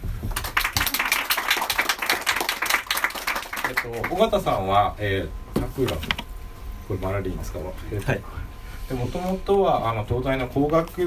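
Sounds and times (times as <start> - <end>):
small group clapping: 0.2 - 4.2
speech: 3.8 - 6.2, 6.9 - 11.0.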